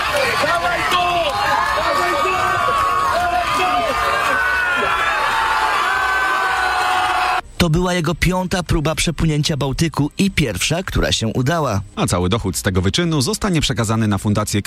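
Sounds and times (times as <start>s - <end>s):
crowd cheering and shouting at beach finish line: 0.0s - 7.4s
speech: 7.6s - 14.6s.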